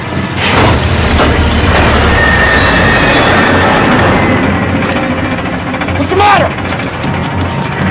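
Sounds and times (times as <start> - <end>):
drilling rig running: 0.0 - 7.8.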